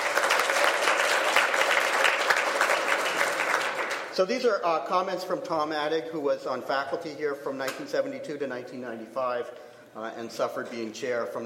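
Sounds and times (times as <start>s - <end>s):
audience applause: 0.0s - 4.1s
speech: 4.2s - 11.4s.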